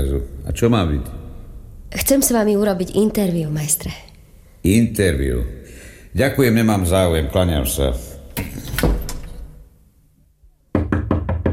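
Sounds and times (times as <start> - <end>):
speech: 0.0 - 1.2, 1.9 - 8.7
knocking on a door: 10.7 - 11.5.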